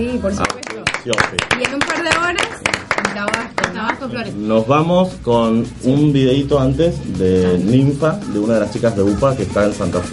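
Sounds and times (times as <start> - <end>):
speech: 0.0 - 10.1
applause from a small group: 0.3 - 4.2.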